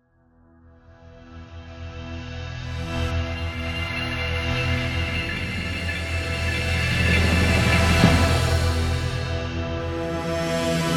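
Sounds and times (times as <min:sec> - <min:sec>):
synthetic orchestral intro: 0:02.7 - 0:10.8.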